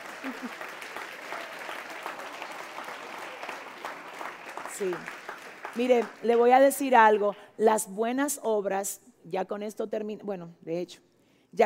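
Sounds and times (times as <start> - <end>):
audience applause: 0.0 - 6.4
speech: 0.2 - 0.7, 4.8 - 5.2, 5.8 - 11.6.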